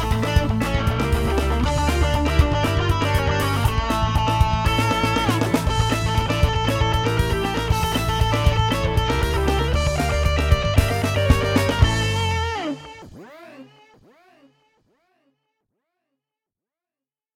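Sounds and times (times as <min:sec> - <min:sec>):
swing demo song: 0:00.0 - 0:13.6.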